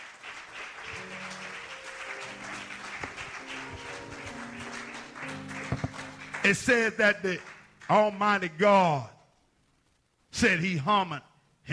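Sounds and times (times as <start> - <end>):
audience hand clapping: 0.0 - 8.5
speech: 6.4 - 9.2, 10.4 - 11.7.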